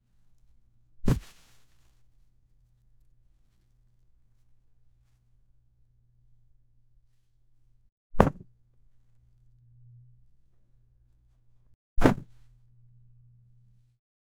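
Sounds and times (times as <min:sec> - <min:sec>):
man falling: 0:01.1 - 0:01.4.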